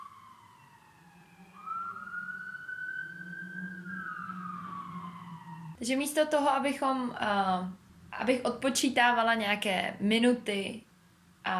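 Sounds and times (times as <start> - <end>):
emergency vehicle siren passing outside: 0.0 - 6.7
speech: 5.8 - 11.5.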